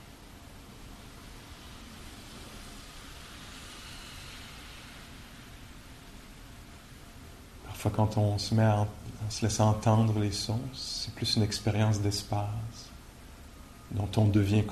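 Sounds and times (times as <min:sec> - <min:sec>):
steady rainfall: 0:00.0 - 0:07.6
speech: 0:07.8 - 0:12.9, 0:13.9 - 0:14.7.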